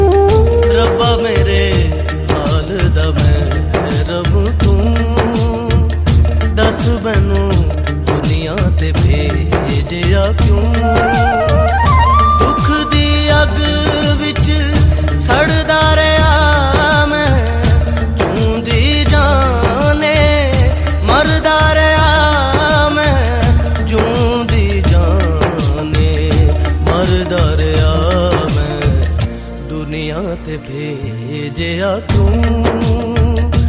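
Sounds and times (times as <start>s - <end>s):
old Hindi song: 0.0s - 33.6s.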